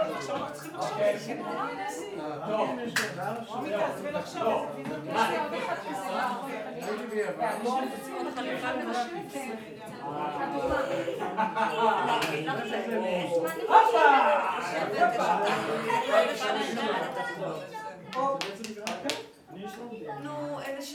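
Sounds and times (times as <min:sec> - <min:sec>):
murmur of voices at dinner: 0:00.0 - 0:20.9
laughter: 0:10.4 - 0:12.9, 0:13.6 - 0:17.4.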